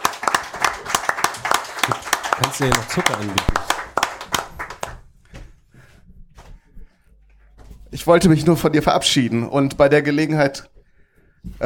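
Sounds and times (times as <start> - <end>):
applause: 0.0 - 5.0
speech: 2.4 - 3.7, 8.0 - 10.7.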